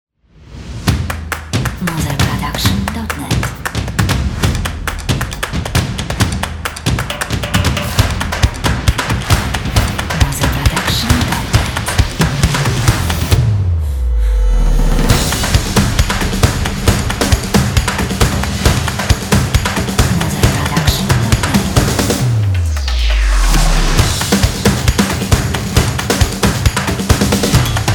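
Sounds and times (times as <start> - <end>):
energetic action drums: 0.7 - 13.7, 14.8 - 27.9.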